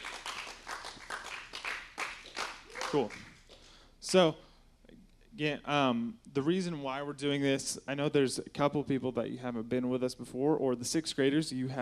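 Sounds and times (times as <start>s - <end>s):
young people including sixth graders clapping: 0.0s - 3.7s
speech: 2.9s - 3.3s, 4.0s - 4.4s, 5.4s - 11.8s.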